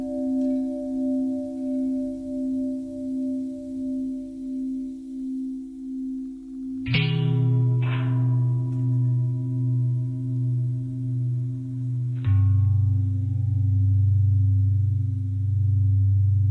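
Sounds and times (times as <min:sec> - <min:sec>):
long bell: 0:00.0 - 0:16.4.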